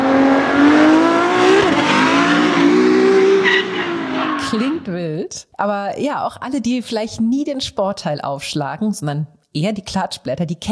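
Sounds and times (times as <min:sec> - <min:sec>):
Formula 1 race cars revving: 0:00.0 - 0:04.9
tire squeal: 0:01.5 - 0:04.8
speech: 0:05.6 - 0:10.7.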